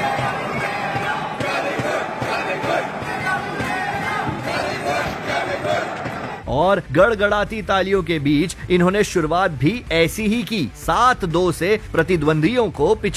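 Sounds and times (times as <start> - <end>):
stadium crowd chanting players' names: 0.0 - 6.4
speech: 6.5 - 13.1.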